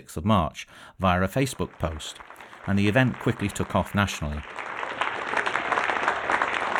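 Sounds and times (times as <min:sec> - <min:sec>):
speech: 0:00.0 - 0:04.7
neighbourhood clapping for carers: 0:01.3 - 0:06.7.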